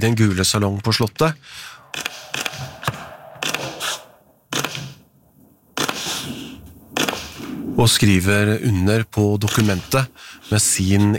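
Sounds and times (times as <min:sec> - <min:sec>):
speech: 0:00.0 - 0:02.4, 0:07.8 - 0:11.1
press photographers' camera shutters clicking: 0:02.0 - 0:02.6, 0:04.6 - 0:05.0, 0:07.0 - 0:07.4.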